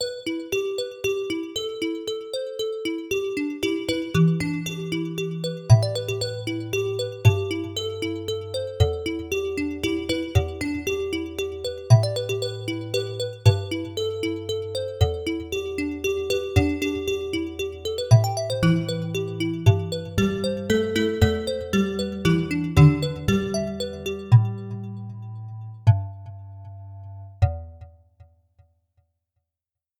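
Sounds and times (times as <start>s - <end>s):
kalimba: 0.0s - 26.4s.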